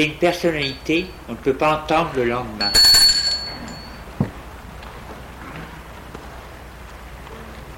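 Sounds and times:
speech: 0.0s - 2.9s
doorbell ringing at night: 2.6s - 4.0s.

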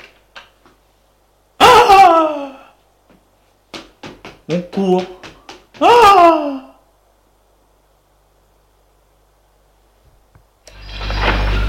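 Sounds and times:
speech: 4.5s - 5.2s, 5.8s - 6.7s
door opening: 10.7s - 11.6s.

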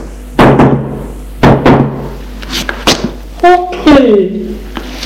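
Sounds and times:
knocking on a bedroom door: 0.4s - 2.1s
speech: 3.4s - 4.4s.

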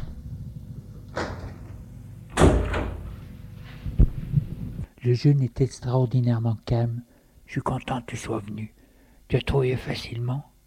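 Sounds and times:
door being closed: 1.1s - 3.3s
speech: 5.0s - 10.5s.

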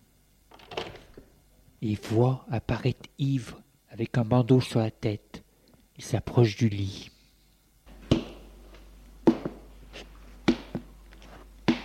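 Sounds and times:
bedroom door opening: 0.5s - 1.2s
speech: 1.8s - 5.3s, 6.0s - 7.1s.

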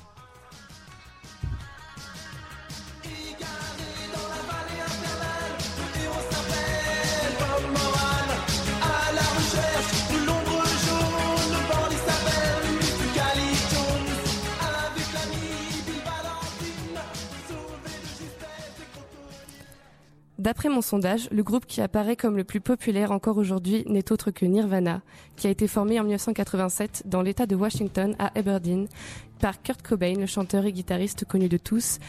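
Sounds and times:
French rock song about school bullying: 0.0s - 19.9s
speech: 20.4s - 32.0s.

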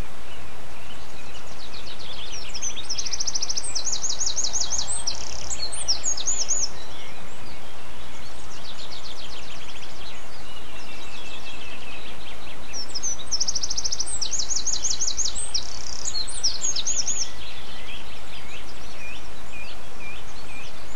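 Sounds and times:
bird song with rapid high ticking trills: 0.0s - 20.9s.

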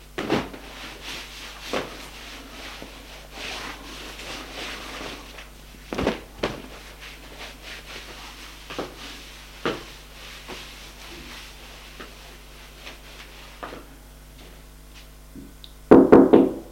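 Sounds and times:
low steady hum: 0.0s - 16.6s
rustling: 0.2s - 14.6s
knocking on a door: 15.9s - 16.6s.

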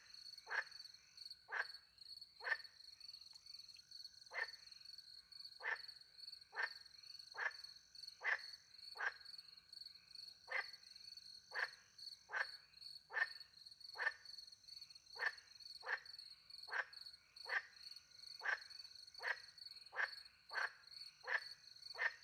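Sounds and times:
frog croaking: 0.4s - 0.8s, 1.5s - 1.7s, 2.4s - 2.7s, 4.3s - 4.7s, 5.6s - 5.9s, 6.5s - 9.3s, 10.5s - 10.8s, 11.4s - 13.4s, 14.0s - 14.2s, 15.1s - 22.2s.

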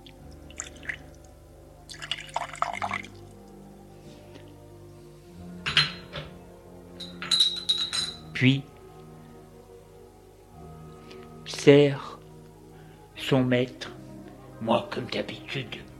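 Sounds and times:
coffee with milk trickling as a servant pours: 0.2s - 1.3s, 1.9s - 3.4s
cups and dishes clinking: 5.6s - 8.4s
speech: 8.4s - 8.7s, 11.6s - 12.1s, 13.3s - 14.0s, 14.6s - 15.9s.

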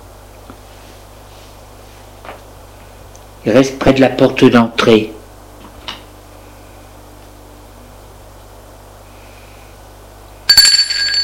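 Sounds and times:
speech: 3.4s - 5.2s
doorbell ringing: 10.5s - 11.2s.

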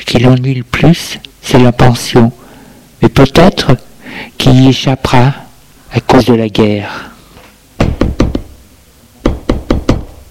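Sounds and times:
speech: 0.1s - 2.4s, 3.0s - 5.4s, 6.1s - 7.1s
knocking on a door: 7.8s - 8.5s, 9.2s - 10.2s.

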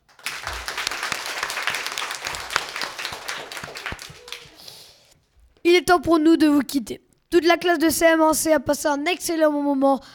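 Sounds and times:
class of children applauding the winner: 0.0s - 5.2s
speech: 5.9s - 10.1s.

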